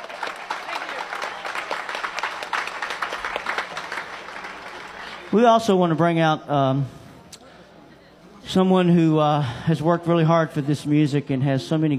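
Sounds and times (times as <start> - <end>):
audience applause: 0.0 - 5.6
speech: 5.3 - 7.0, 8.5 - 11.9.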